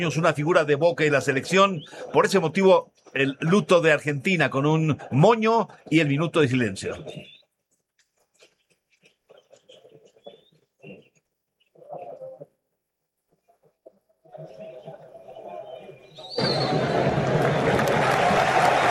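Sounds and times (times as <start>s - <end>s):
speech: 0.0s - 7.4s
stadium crowd applauding: 16.3s - 18.9s.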